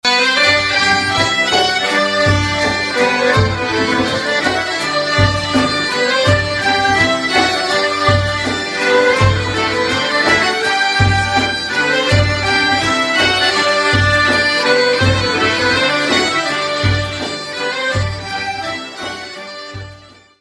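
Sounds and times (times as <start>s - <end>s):
Scottish schottische dance music from Belgium: 0.0s - 20.3s.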